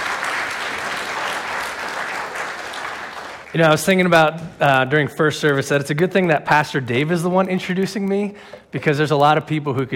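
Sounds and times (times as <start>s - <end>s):
crowd applauding: 0.0s - 4.2s
speech: 3.5s - 9.9s.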